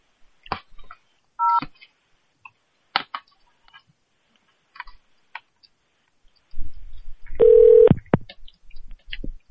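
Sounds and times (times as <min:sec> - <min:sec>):
telephone keypad dual-tone beep on a phone menu: 0:07.4 - 0:07.9.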